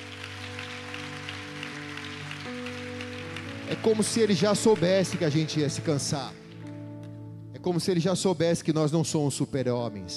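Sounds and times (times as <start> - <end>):
audience applauding: 0.0 - 6.7
sustained keyboard chords: 0.0 - 10.1
speech: 3.7 - 6.4, 7.6 - 10.1.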